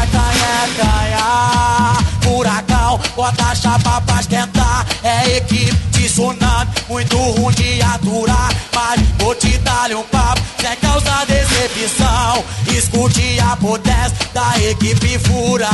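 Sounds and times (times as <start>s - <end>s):
tamborzao drum beat playing live: 0.0s - 15.7s.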